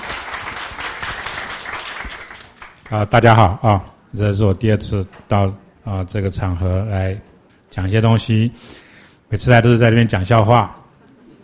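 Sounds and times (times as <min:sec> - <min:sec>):
audience applause welcoming the featured speaker at a talk: 0:00.0 - 0:02.9
speech: 0:02.9 - 0:10.8.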